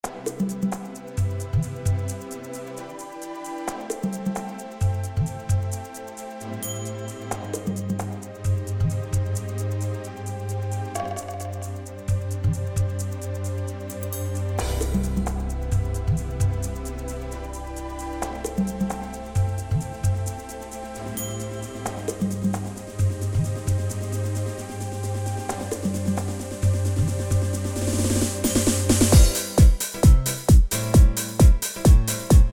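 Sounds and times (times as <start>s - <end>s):
rhythm: 0.0s - 32.5s.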